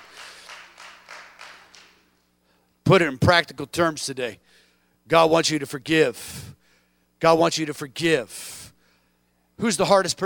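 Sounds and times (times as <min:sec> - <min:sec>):
audience clapping hands: 0:00.0 - 0:02.2
speech: 0:02.9 - 0:06.6, 0:07.2 - 0:08.6, 0:09.6 - 0:10.2.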